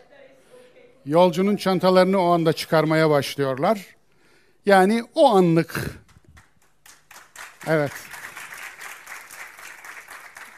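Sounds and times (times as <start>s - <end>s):
speech: 1.0s - 4.0s, 4.6s - 6.0s, 7.6s - 8.1s
audience applause at a Quran lecture: 6.3s - 10.5s.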